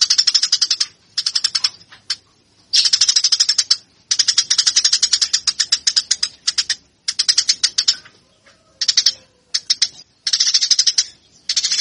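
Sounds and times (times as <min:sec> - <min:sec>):
Eurasian tree sparrow song: 0:00.0 - 0:11.7.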